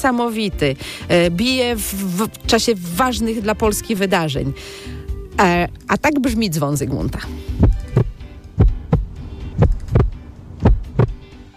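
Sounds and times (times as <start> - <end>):
speech: 0.0 - 7.5
heartbeat thumping: 7.5 - 11.2.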